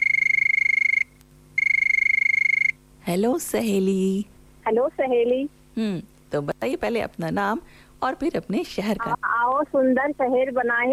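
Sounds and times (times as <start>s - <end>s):
phone line electronic hold tone: 0.0s - 2.8s
speech: 3.1s - 10.9s.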